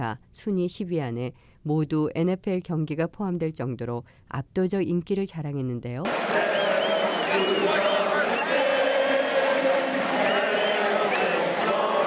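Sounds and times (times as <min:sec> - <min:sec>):
speech: 0:00.0 - 0:06.7
football stadium crowd cheering before game: 0:06.1 - 0:12.0.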